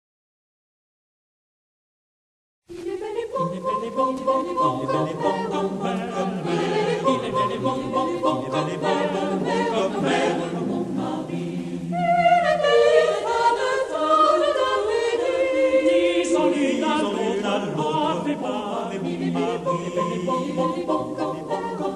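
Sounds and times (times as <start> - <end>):
all voice parts singing: 2.7 - 21.9.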